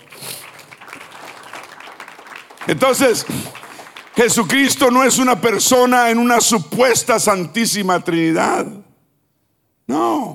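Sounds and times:
audience applause: 0:00.0 - 0:05.2
speech: 0:02.6 - 0:03.6, 0:04.2 - 0:08.8.

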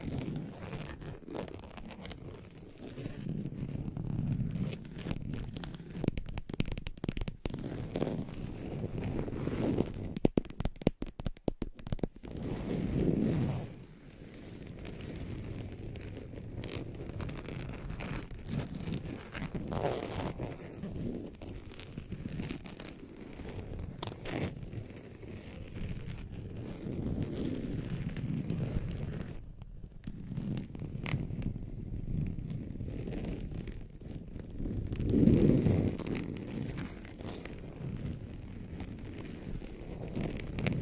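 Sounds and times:
scratching and tracing across a surface: 0:00.0 - 0:29.4, 0:30.0 - 0:40.8
sharp taps and scrapes: 0:09.8 - 0:12.2.

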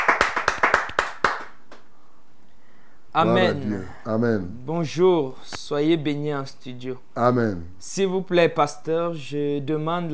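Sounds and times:
people clapping hands in praise: 0:00.0 - 0:01.9
speech: 0:03.2 - 0:10.1.

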